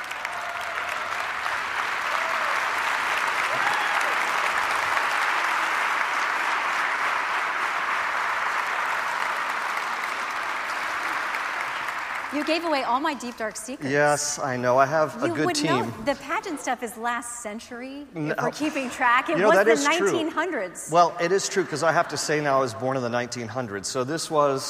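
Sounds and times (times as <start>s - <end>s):
standing audience applauding to welcome a guest author at an evening book discussion: 0.0s - 14.1s
speech: 12.4s - 24.6s.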